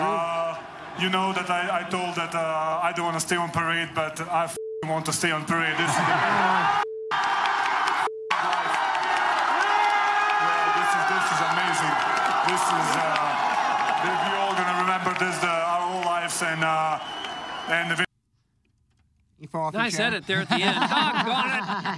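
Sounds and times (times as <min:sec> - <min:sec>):
crowd cheering at parade: 0:00.0 - 0:03.0, 0:05.4 - 0:18.1
speech: 0:01.0 - 0:06.8, 0:12.5 - 0:13.2, 0:16.3 - 0:18.0, 0:19.5 - 0:21.9
laughter: 0:05.5 - 0:06.8, 0:19.9 - 0:21.9.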